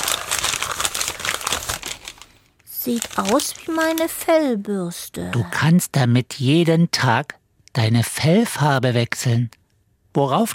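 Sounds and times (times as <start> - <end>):
wrapping paper crinkling as an Easter gift is unwrapped: 0.0 - 4.2
speech: 2.8 - 10.5.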